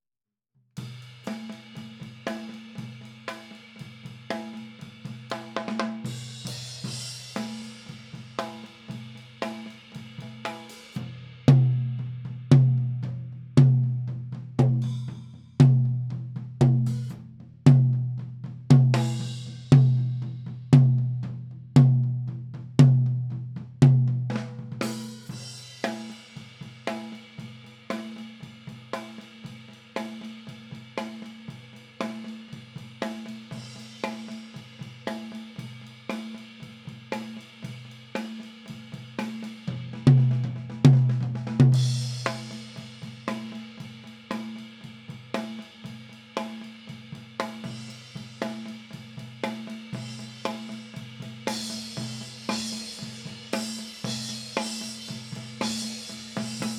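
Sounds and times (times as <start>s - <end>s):
tom drums: 0.8s - 56.7s.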